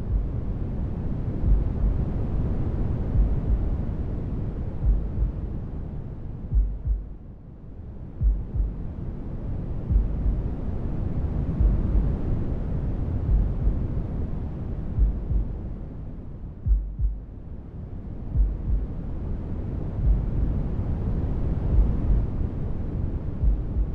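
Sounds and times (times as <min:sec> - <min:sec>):
heartbeat: 0:00.0 - 0:00.4, 0:01.4 - 0:01.9, 0:03.1 - 0:03.8, 0:04.8 - 0:05.4, 0:06.5 - 0:07.2, 0:08.2 - 0:08.8, 0:09.9 - 0:10.5, 0:11.6 - 0:12.1, 0:13.3 - 0:13.8, 0:15.0 - 0:15.6, 0:16.6 - 0:17.3, 0:18.3 - 0:19.0, 0:20.0 - 0:20.4, 0:21.7 - 0:22.3, 0:23.4 - 0:23.9
noise: 0:00.0 - 0:23.9.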